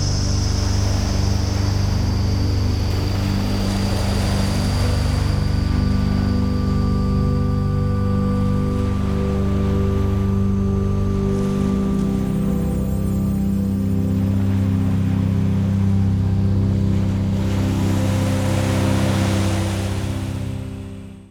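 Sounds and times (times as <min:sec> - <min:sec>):
ocean sounds: 0:00.0 - 0:21.3
relaxation music: 0:00.0 - 0:21.3.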